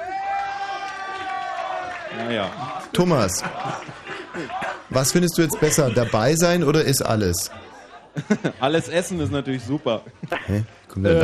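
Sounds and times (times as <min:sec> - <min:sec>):
audience applause: 0:00.0 - 0:06.5
speech: 0:02.1 - 0:07.6, 0:08.2 - 0:11.2
laughter: 0:03.0 - 0:11.2.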